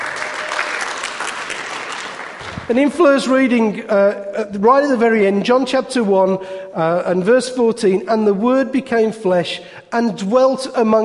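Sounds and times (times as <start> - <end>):
crowd clapping: 0.0 - 2.9
speech: 2.7 - 11.0.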